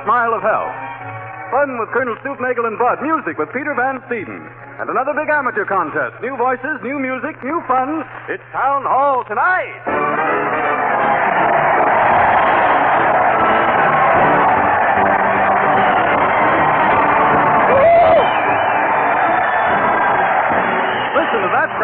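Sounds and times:
crowd cheering at a parade: 0.0 - 3.3, 9.9 - 21.8
speech: 0.0 - 10.6
rising whistle: 17.1 - 21.8.

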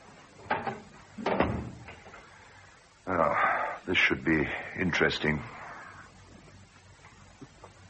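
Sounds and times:
bathroom door being closed: 0.5 - 1.9
speech: 3.9 - 5.6.

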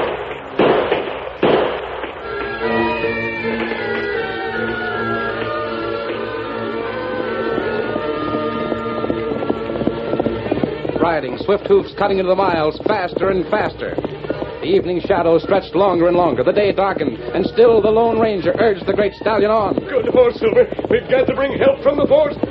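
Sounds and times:
gunshots: 0.0 - 2.6
sustained tonal music: 2.2 - 11.6
speech: 11.2 - 22.4.

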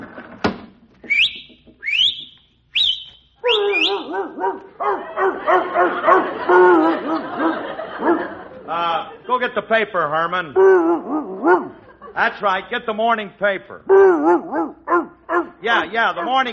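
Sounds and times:
person whistling out the window: 1.0 - 4.1
speech: 4.2 - 5.1, 9.4 - 11.6, 12.2 - 14.7, 15.6 - 16.5
laughter: 4.7 - 9.8, 10.6 - 12.6.

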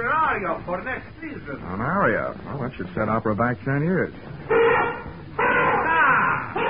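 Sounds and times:
speech: 0.4 - 5.2
elephant trumpeting: 4.5 - 6.6.

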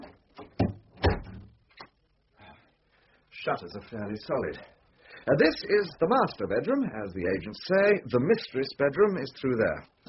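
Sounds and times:
wooden door pushed shut: 0.4 - 1.5
speech: 3.4 - 10.0.

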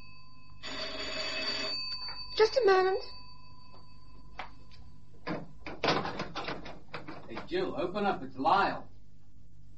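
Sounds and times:
doorbell ringing: 0.0 - 5.6
speech: 2.4 - 3.2, 7.5 - 8.9.

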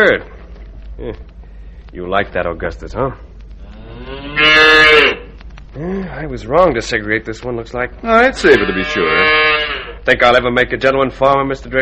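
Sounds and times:
speech: 0.0 - 0.3, 1.0 - 1.3, 1.9 - 3.3, 5.8 - 11.8
farm herd calf mooing: 3.6 - 5.3, 8.1 - 10.0.

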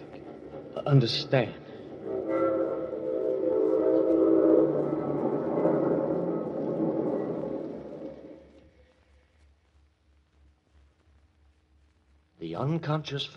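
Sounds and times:
freight train rumbling: 0.0 - 8.4
speech: 0.9 - 1.6, 12.8 - 13.3
freight train horn blaring: 1.7 - 8.4.

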